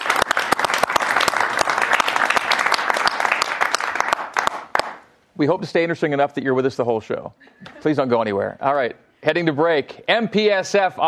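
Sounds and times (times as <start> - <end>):
audience round of applause: 0.0 - 5.0
speech: 5.4 - 11.0.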